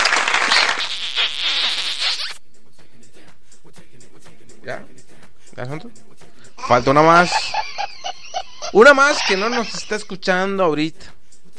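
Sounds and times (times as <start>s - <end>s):
dense burst of crowd clapping: 0.0s - 0.9s
speech: 5.6s - 6.1s, 6.7s - 7.6s, 8.7s - 11.2s
laughter: 6.6s - 10.2s.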